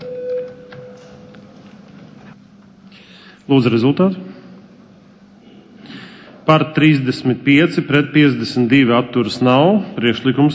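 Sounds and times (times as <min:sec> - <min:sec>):
parliamentary voting bell: 0:00.0 - 0:01.3
speech: 0:03.4 - 0:04.4, 0:06.5 - 0:10.5.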